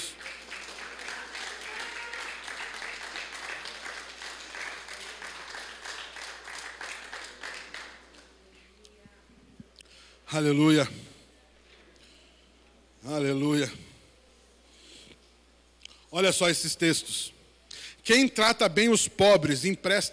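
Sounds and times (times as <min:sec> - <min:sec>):
audience applauding: 0:00.0 - 0:08.3
speech: 0:10.3 - 0:11.0, 0:16.3 - 0:17.4, 0:18.1 - 0:20.1.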